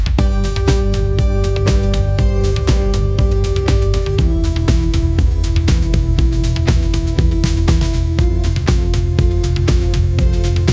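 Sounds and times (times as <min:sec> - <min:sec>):
pop anthem: 0:00.2 - 0:10.7.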